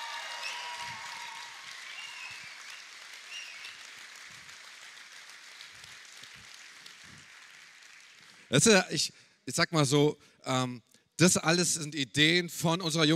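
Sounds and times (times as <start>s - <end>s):
audience applause: 0.0s - 8.6s
speech: 8.5s - 13.1s.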